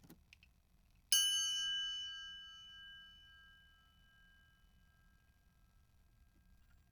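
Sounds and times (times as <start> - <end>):
triangle: 1.1 - 6.8.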